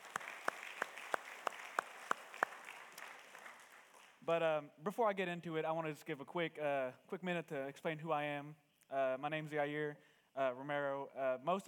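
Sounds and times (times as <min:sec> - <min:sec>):
round of applause: 0:00.0 - 0:04.3
speech: 0:04.3 - 0:11.6.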